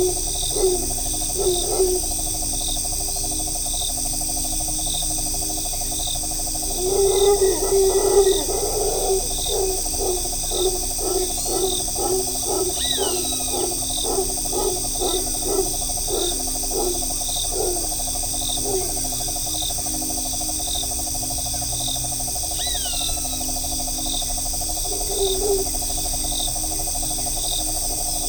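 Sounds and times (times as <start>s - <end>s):
low hooting bird in a Costa Rican forest: 0.0s - 2.2s, 6.6s - 19.4s, 22.5s - 23.6s, 24.8s - 26.6s
shrill insect drone in a Costa Rican forest: 0.0s - 28.2s
higher bird chirps in a Costa Rican forest: 9.5s - 17.9s.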